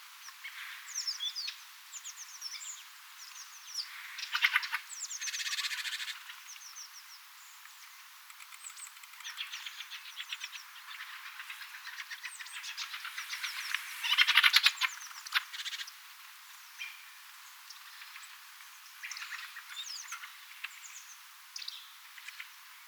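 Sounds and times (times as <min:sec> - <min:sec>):
busy flock of small birds calling: 0:00.2 - 0:22.6
thrush harsh chattering calls: 0:08.7 - 0:15.9.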